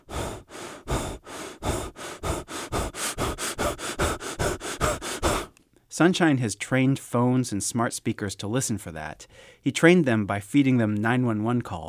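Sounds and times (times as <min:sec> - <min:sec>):
gasping breathing during a heart attack: 0:00.0 - 0:05.6
speech: 0:06.0 - 0:11.8.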